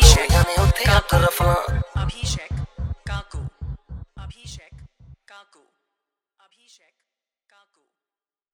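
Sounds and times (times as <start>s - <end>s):
hard bass remix song: 0.0s - 4.9s.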